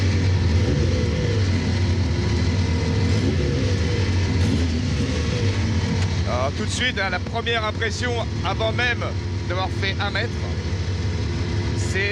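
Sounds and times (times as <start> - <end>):
car engine running: 0.0 - 12.0
speech: 6.5 - 10.5.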